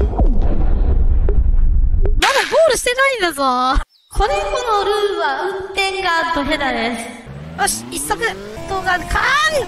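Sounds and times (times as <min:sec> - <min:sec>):
video game explosion: 0:00.1 - 0:02.0
speech: 0:03.1 - 0:09.6.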